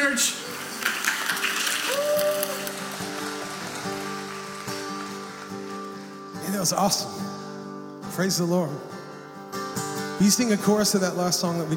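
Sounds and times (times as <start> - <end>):
audience clapping and cheering: 0.0 - 7.3
speech: 0.1 - 0.6, 6.6 - 7.2, 8.2 - 9.0, 10.2 - 11.7.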